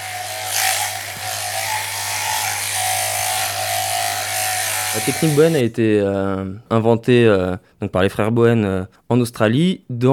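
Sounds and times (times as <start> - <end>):
electric shears shearing a sheep: 0.0 - 5.6
speech: 4.9 - 10.1.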